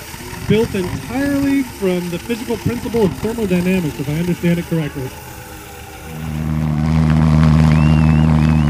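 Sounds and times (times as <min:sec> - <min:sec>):
pulse jet engine running: 0:00.0 - 0:08.6
speech: 0:00.5 - 0:05.3
thin whistling tone: 0:07.5 - 0:08.6.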